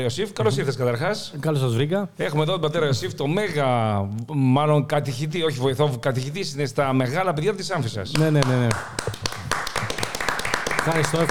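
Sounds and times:
speech: 0.0 - 9.1, 10.8 - 11.2
hand clapping: 8.1 - 11.2.

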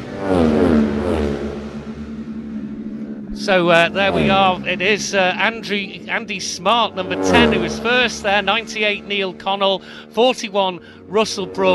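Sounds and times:
racing motorcycles roaring past the finish line: 0.0 - 9.4
speech: 3.4 - 11.7.

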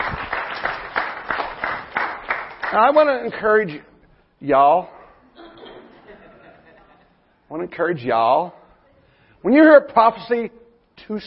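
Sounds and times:
audience applauding: 0.0 - 3.1
speech: 2.7 - 5.0, 7.5 - 8.6, 9.4 - 11.2
laughter: 5.3 - 7.3.

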